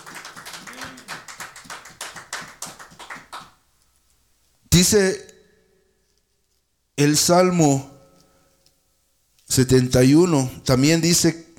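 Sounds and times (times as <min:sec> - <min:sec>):
crowd clapping hands in a steady rapid rhythm: 0:00.0 - 0:03.7
speech: 0:04.8 - 0:05.3, 0:07.0 - 0:07.9, 0:09.6 - 0:11.4.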